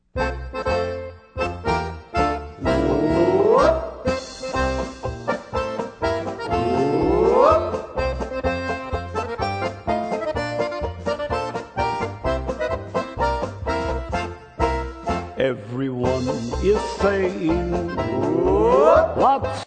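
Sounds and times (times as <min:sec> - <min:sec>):
polka music: 0:00.0 - 0:19.6.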